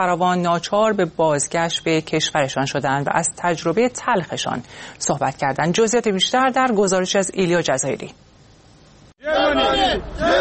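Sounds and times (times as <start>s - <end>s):
speech: 0.0s - 8.2s, 9.2s - 10.3s
refugees shouting at border of Belarus and Poland: 9.2s - 10.3s.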